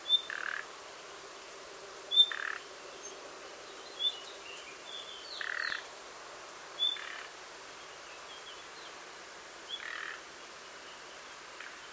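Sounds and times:
common nightingale calls: 0:00.0 - 0:00.6, 0:02.1 - 0:05.9, 0:06.8 - 0:09.0, 0:09.7 - 0:10.2
faint hiss: 0:00.0 - 0:11.9.

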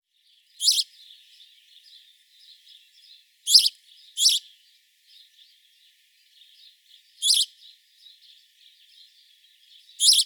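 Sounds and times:
house sparrow chirps: 0:00.2 - 0:10.2
faint twittering: 0:00.6 - 0:00.8, 0:03.5 - 0:04.4, 0:07.2 - 0:07.5, 0:10.0 - 0:10.2.

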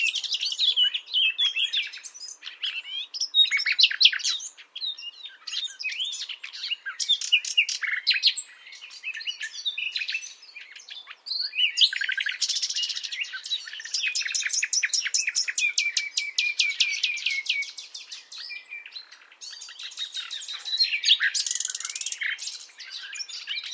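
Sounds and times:
Common nightingale singing: 0:00.0 - 0:23.7.

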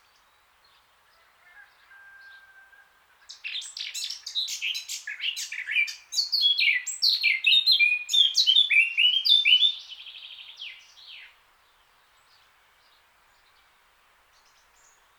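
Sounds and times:
Eurasian blackcap Sylvia atricapilla singing warbled phrases: 0:03.4 - 0:09.9.

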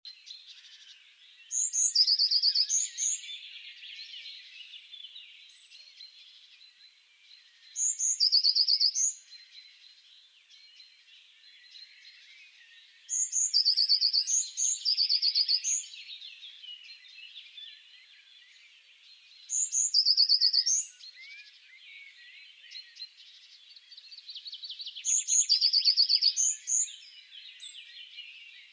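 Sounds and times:
chorus of other birds chirping: 0:00.1 - 0:28.7
Eurasian blue tit singing: 0:01.5 - 0:06.2, 0:07.7 - 0:09.5, 0:11.7 - 0:17.8, 0:19.4 - 0:21.5, 0:22.1 - 0:28.7.

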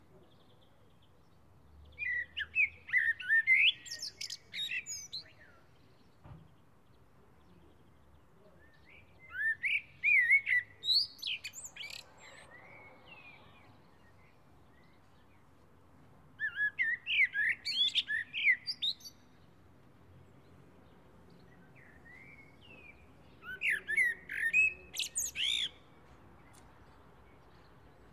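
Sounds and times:
common blackbird singing: 0:00.1 - 0:15.5, 0:16.4 - 0:19.5, 0:20.8 - 0:28.1.

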